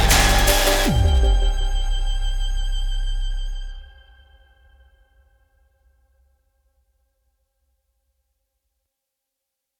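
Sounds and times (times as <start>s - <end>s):
full main music track at 160 BPM: 0.0s - 4.6s.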